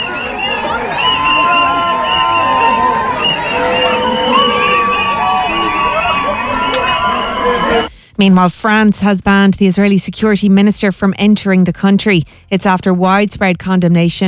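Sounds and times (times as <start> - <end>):
crowd cheering at airport arrivals: 0.0 - 7.9
excited voices whooping: 0.0 - 7.9
speech: 8.2 - 14.2.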